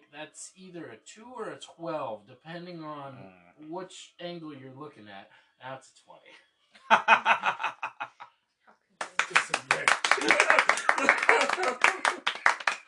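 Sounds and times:
speech: 0.2s - 7.9s, 9.3s - 12.1s
laughter: 6.8s - 8.2s, 9.3s - 12.8s
round of applause: 9.0s - 12.8s.

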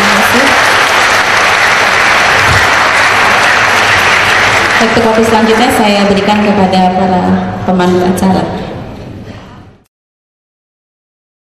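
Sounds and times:
audience applause for two guest speakers at an evening religious gathering: 0.0s - 5.9s
speech: 4.8s - 8.6s.

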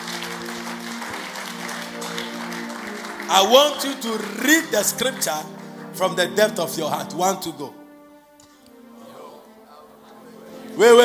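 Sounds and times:
church congregation clapping in praise: 0.0s - 7.5s
speech: 3.3s - 7.8s, 10.8s - 11.0s.

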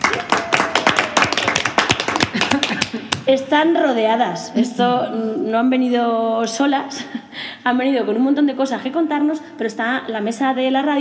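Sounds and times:
applause: 0.0s - 3.2s
laughter: 2.2s - 3.1s
speech: 3.3s - 10.9s.

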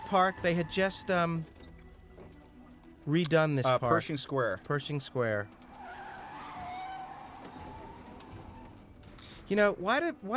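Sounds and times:
car tires screeching: 0.0s - 1.4s, 5.4s - 9.1s
speech: 0.1s - 1.6s, 3.1s - 5.6s, 9.5s - 10.3s.

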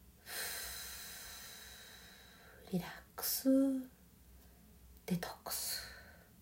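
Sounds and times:
deep exhale during a guided breathing relaxation exercise: 0.2s - 2.6s
speech: 2.7s - 3.9s, 5.1s - 5.4s.

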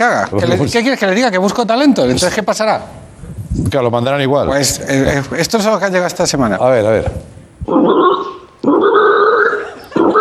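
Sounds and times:
speech: 0.0s - 8.0s
person imitating a pig grunting: 7.7s - 10.1s.

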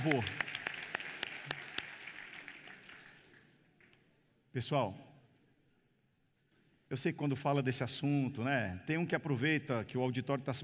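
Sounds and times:
speech: 0.0s - 0.4s, 4.5s - 5.1s, 6.9s - 10.6s
audience clapping: 0.0s - 4.0s.

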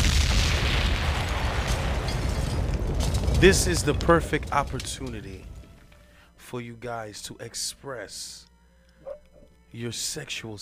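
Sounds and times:
bomb explosion: 0.0s - 5.7s
speech: 3.4s - 5.6s, 6.5s - 8.5s, 9.7s - 10.6s.

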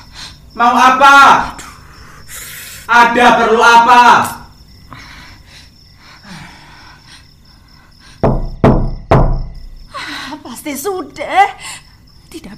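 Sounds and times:
speech: 0.5s - 1.6s, 2.9s - 4.4s, 10.6s - 11.7s, 12.4s - 12.5s
knocking on a door: 8.2s - 9.7s.

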